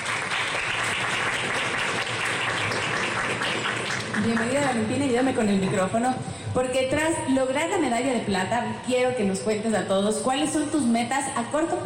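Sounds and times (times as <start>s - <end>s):
audience applause: 0.0s - 5.6s
speech: 4.2s - 11.8s.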